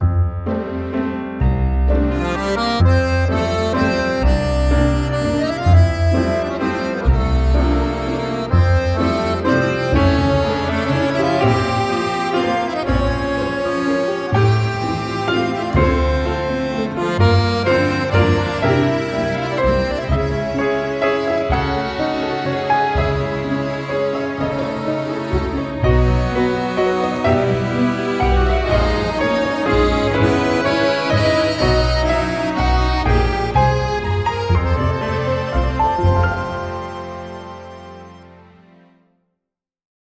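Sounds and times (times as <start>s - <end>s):
French film music: 0.0s - 39.1s.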